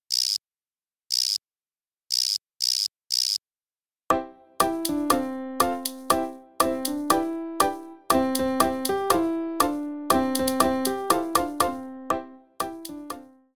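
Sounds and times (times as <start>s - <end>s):
instrumental music with melody line: 4.1s - 13.5s.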